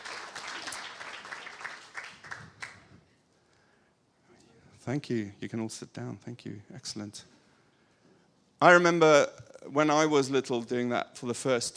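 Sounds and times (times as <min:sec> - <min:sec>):
audience clapping: 0:00.0 - 0:03.0
speech: 0:04.8 - 0:07.4, 0:08.6 - 0:11.7.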